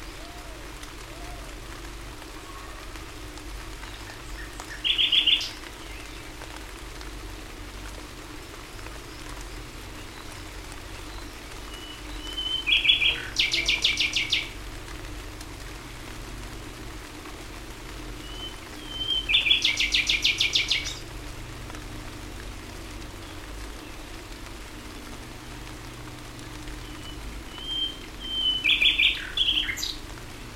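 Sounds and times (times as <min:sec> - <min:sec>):
common nightingale singing: 0:03.8 - 0:06.2, 0:10.0 - 0:14.6, 0:18.2 - 0:21.0, 0:26.8 - 0:30.0.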